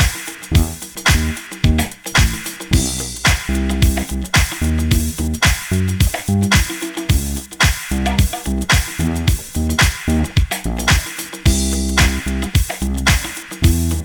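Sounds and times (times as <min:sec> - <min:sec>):
bass: 0:00.0 - 0:14.0.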